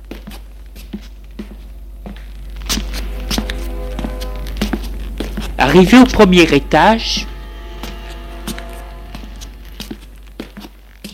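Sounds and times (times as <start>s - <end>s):
footsteps climbing a staircase toward the second floor: 0.0s - 5.6s, 8.5s - 11.1s
steady low hum: 0.0s - 11.1s
speech: 5.6s - 7.3s.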